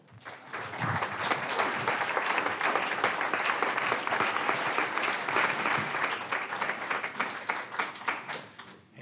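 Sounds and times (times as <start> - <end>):
audience applause at the Fayetteville Public Library welcoming a musician: 0.0 - 8.8.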